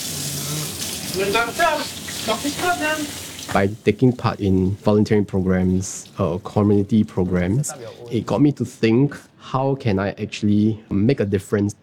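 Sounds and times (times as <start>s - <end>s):
water running from a tap as hands are washed: 0.0s - 7.6s
speech: 1.2s - 11.8s.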